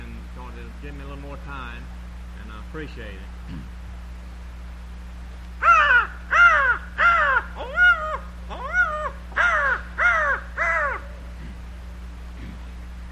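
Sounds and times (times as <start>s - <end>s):
speech: 0.8s - 3.8s
man imitating crow caws: 5.6s - 11.6s.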